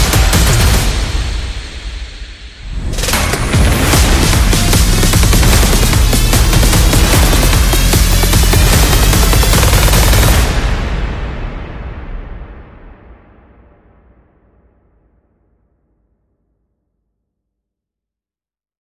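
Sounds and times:
music without lead synths: 0.0 - 12.7.

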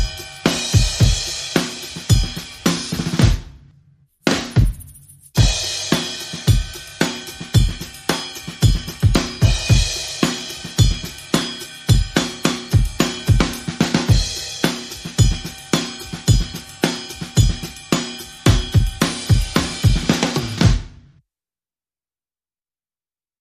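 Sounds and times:
percussion: 0.0 - 20.9
drums: 0.0 - 21.1.

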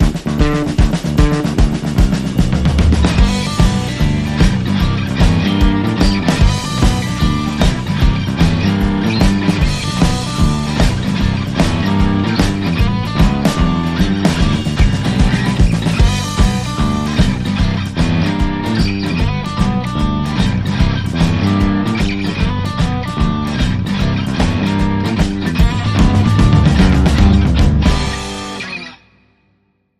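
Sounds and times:
Midwest-style band jam: 0.0 - 28.9.

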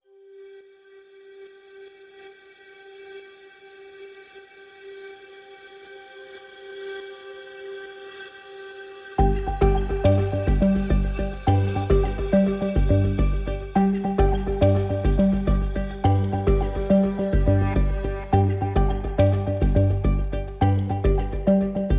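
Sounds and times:
synth pads: 4.6 - 21.9.

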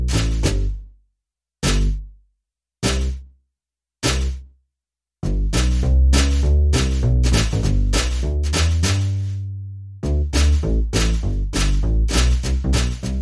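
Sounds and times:
percussion: 0.0 - 0.8, 1.6 - 2.0, 2.8 - 3.3, 4.0 - 4.5, 5.2 - 13.2
bass: 0.0 - 1.0, 1.6 - 2.2, 2.8 - 3.4, 4.0 - 4.5, 5.2 - 13.2.

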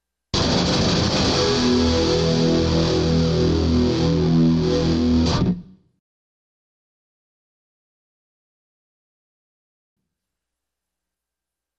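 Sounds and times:
solo guitar riff: 0.4 - 5.8.

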